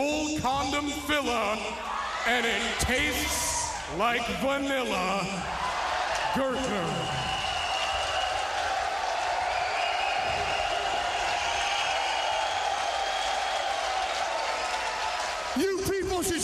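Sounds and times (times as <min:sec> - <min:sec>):
speech: 0:00.0 - 0:05.7, 0:06.3 - 0:07.3
audience applause: 0:05.5 - 0:16.4.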